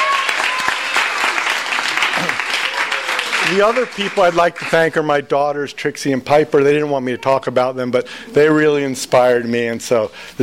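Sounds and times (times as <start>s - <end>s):
audience clapping: 0.0s - 5.2s
speech: 3.5s - 10.4s.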